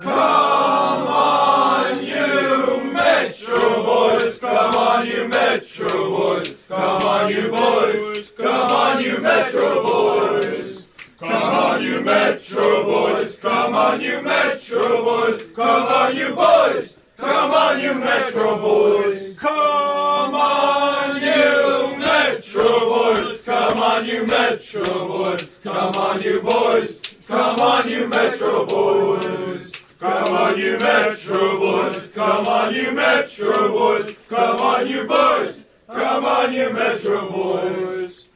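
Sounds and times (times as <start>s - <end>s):
crowd chanting: 0.0s - 38.3s.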